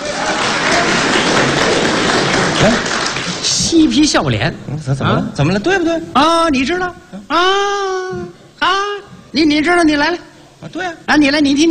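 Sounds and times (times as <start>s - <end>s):
audience applause at a Chinese crosstalk comedy performance: 0.0s - 3.8s
speech: 2.6s - 11.7s.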